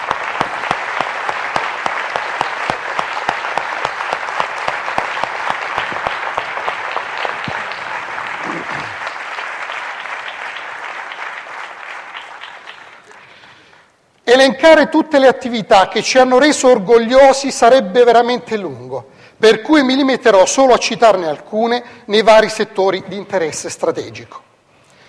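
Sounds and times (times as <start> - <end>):
audience applause: 0.0 - 13.9
speech: 14.3 - 24.5.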